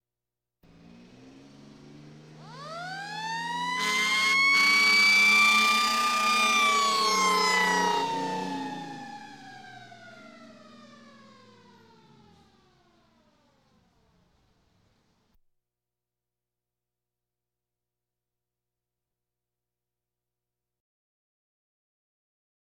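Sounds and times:
police sirens: 0.7 - 14.5.

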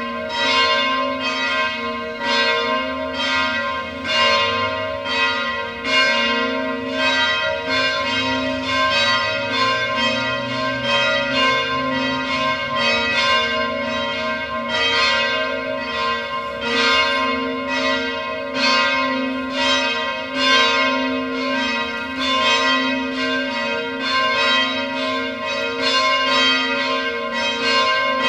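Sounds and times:
church bells ringing: 0.0 - 28.2.

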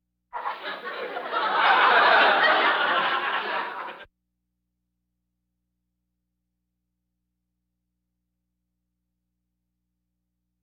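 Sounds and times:
audience laughter: 0.4 - 4.1.

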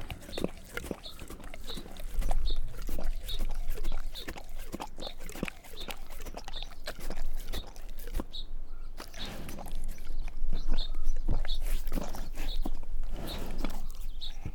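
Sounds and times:
male Bengal tiger growling and snorting: 0.0 - 8.4, 9.0 - 14.5.

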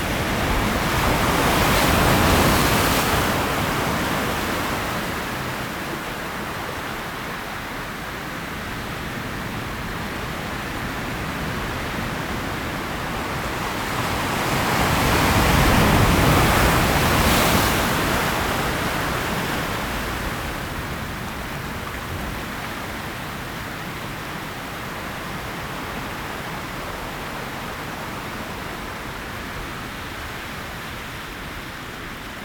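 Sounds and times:
sea on a stone beach: 0.0 - 32.4.

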